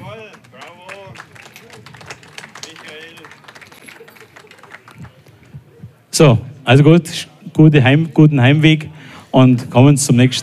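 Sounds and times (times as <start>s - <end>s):
audience applause: 0.0s - 5.5s
speech: 6.2s - 10.4s.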